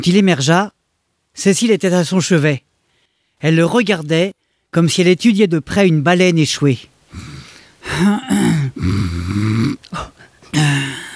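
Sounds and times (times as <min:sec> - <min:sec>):
speech: 0:00.0 - 0:00.8, 0:01.4 - 0:02.7, 0:03.4 - 0:07.3, 0:08.0 - 0:11.1
snoring: 0:08.1 - 0:09.8.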